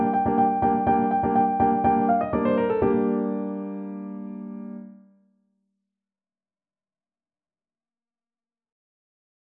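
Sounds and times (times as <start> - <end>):
piano: 0.0 - 5.2.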